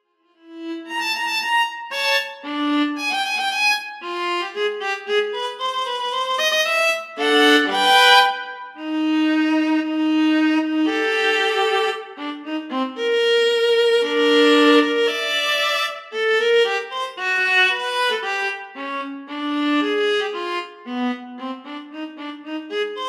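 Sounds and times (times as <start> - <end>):
violin solo: 0.4 - 23.0.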